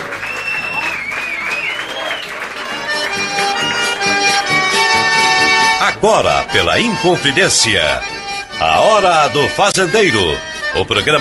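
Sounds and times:
cheering voices: 0.0 - 5.1
crowd clapping: 0.0 - 5.6
sliding whistles: 0.2 - 2.4, 3.4 - 4.4
speech: 6.0 - 11.1.

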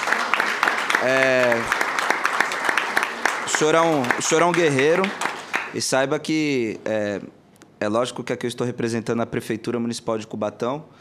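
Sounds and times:
audience applause: 0.0 - 5.8
speech: 1.0 - 1.8, 3.6 - 10.9.

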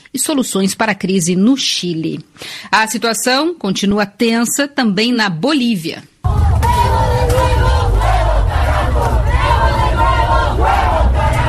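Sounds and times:
speech: 0.1 - 6.1
protest crowd shouting and chanting at night: 6.3 - 11.4.

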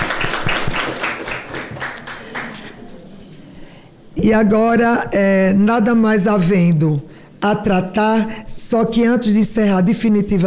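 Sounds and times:
audience applause: 0.0 - 2.7
speech: 4.2 - 10.4.

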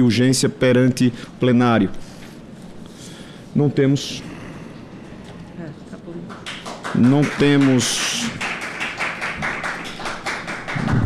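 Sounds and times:
speech: 0.0 - 2.1, 3.6 - 4.3, 7.0 - 8.3
people applauding: 6.2 - 11.0.

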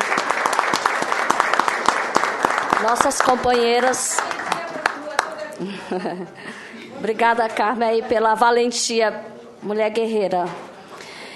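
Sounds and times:
big round of applause in solidarity for a woman: 0.0 - 5.7
speech: 2.8 - 4.4, 5.6 - 10.7
laughter: 5.4 - 7.0.

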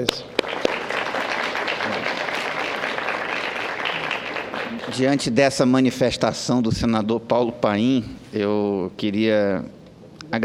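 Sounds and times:
speech: 0.0 - 0.4, 4.9 - 10.4
applause: 0.0 - 5.4.

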